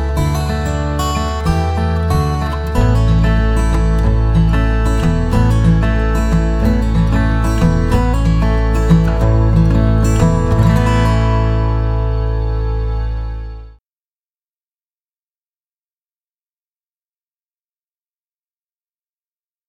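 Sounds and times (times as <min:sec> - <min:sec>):
acoustic guitar: 0:00.0 - 0:13.8.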